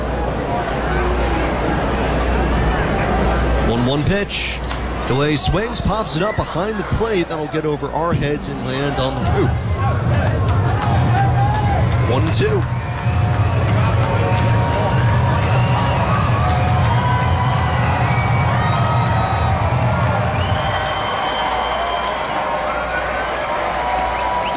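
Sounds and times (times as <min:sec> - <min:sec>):
large stadium crowd cheering: 0:00.0 - 0:24.5
speech: 0:03.8 - 0:10.0, 0:12.1 - 0:12.7
scattered shouts and whistles: 0:10.9 - 0:24.5.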